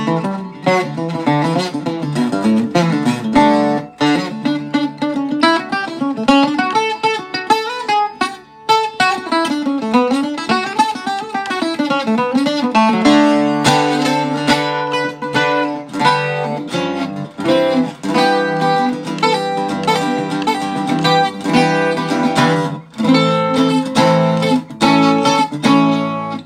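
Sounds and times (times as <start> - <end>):
octave guitar body: 0.0 - 26.4.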